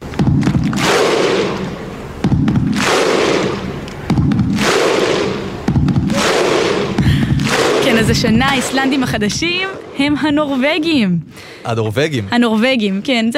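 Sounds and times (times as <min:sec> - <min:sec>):
football fans' rhythmic cheering chant: 0:00.4 - 0:09.0
speech: 0:08.1 - 0:13.3.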